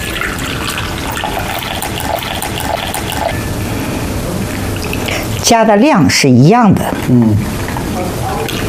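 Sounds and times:
warm water about 50 degrees pouring into a container: 0.0s - 3.4s, 4.5s - 5.5s
speech: 5.5s - 8.6s.

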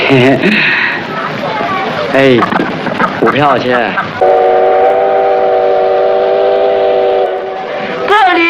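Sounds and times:
speech: 0.1s - 0.8s, 2.1s - 4.3s
passenger train whistle at a station: 4.2s - 8.3s.

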